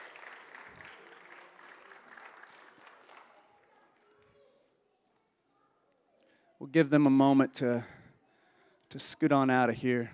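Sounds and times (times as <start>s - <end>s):
crowd applauding: 0.0s - 4.2s
speech: 6.6s - 8.0s, 8.9s - 10.1s.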